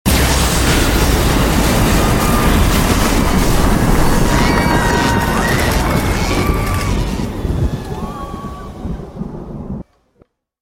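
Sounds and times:
powerful shockwave blast: 0.1 - 9.8.

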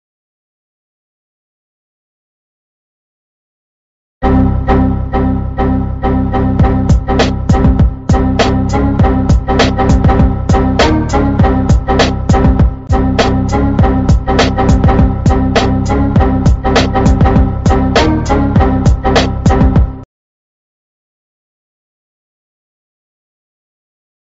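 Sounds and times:
music: 4.2 - 20.1.

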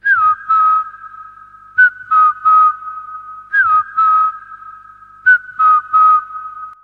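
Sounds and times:
whistle: 0.0 - 6.8.

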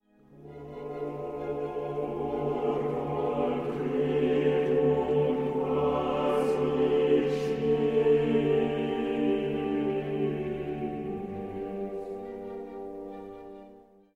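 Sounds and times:
somber choir singing: 0.3 - 14.0.

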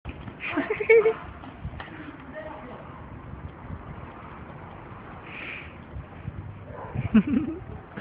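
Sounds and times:
person giggling: 7.0 - 7.9.

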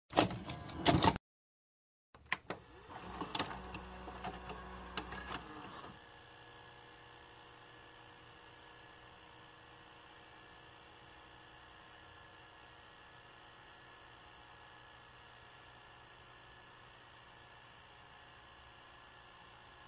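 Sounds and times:
VHS tape inserted into player and read: 0.1 - 1.2, 2.2 - 6.0.

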